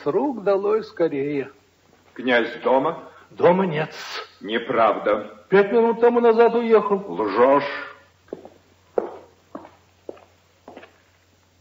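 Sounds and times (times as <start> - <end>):
speech: 0.0 - 1.6, 2.2 - 7.9
footsteps climbing a staircase: 8.3 - 11.0.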